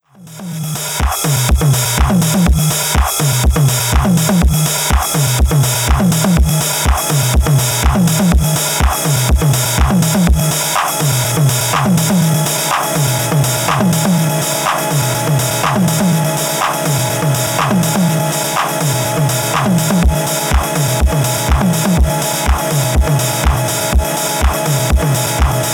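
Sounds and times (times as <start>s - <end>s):
drum machine: 0.1s - 25.7s.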